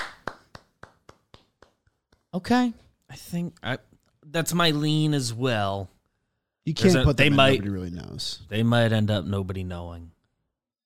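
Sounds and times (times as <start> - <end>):
hands clapping: 0.0 - 2.5
speech: 2.4 - 5.9, 6.6 - 10.2.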